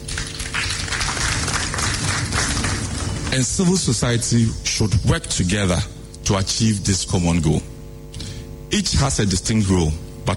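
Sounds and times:
audience applause: 0:00.0 - 0:03.4
speech: 0:03.3 - 0:07.7, 0:08.7 - 0:10.3.

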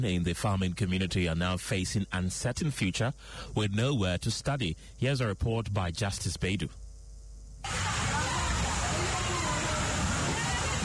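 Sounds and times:
speech: 0:00.0 - 0:06.8
torrential rain pouring into classroom: 0:07.6 - 0:10.8.

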